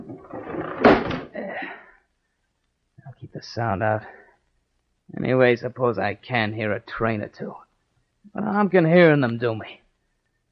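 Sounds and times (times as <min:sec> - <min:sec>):
window being closed: 0:00.0 - 0:01.4
speech: 0:03.4 - 0:04.2, 0:05.2 - 0:07.6, 0:08.4 - 0:09.8.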